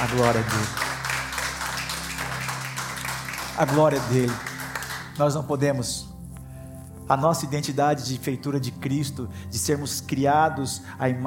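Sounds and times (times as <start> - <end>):
speech: 0.0 - 0.9, 3.6 - 4.5, 5.2 - 6.1, 7.1 - 11.2
audience applause: 0.0 - 5.2
low sustained musical drone: 0.0 - 11.2.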